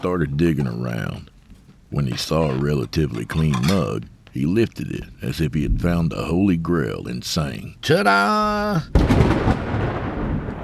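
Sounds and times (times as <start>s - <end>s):
speech: 0.0s - 1.3s, 1.9s - 9.8s
floor-shaking thunder: 8.9s - 10.6s.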